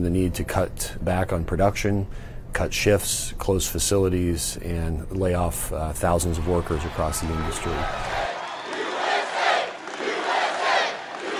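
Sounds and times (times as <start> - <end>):
speech: 0.0 - 8.2
rally crowd cheering and chanting: 6.2 - 11.3.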